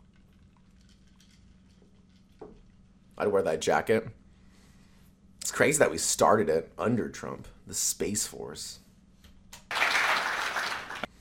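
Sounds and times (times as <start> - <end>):
speech: 3.2 - 4.2, 5.6 - 8.8
long applause: 9.6 - 11.1.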